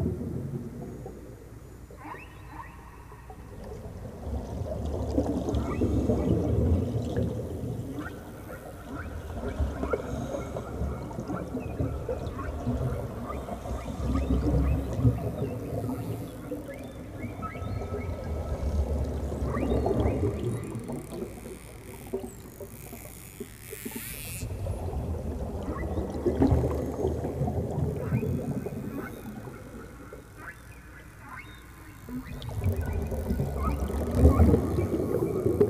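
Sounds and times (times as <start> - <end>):
whale calls: 0.0 - 35.6
dolphin clicks and whistles: 1.9 - 3.5, 5.6 - 6.3, 7.9 - 22.5, 25.6 - 27.1, 27.8 - 35.6.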